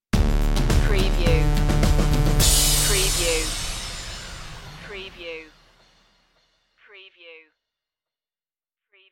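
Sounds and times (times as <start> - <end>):
musical stinger: 0.4 - 6.0.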